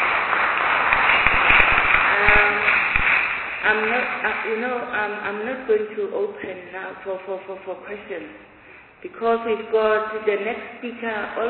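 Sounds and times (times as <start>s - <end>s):
audience round of applause: 0.0s - 4.5s
speech: 3.7s - 11.4s.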